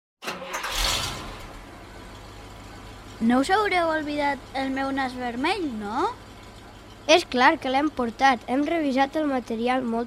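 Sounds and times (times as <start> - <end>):
truck engine starting: 0.2 - 10.0
speech: 3.2 - 6.2, 7.1 - 10.0.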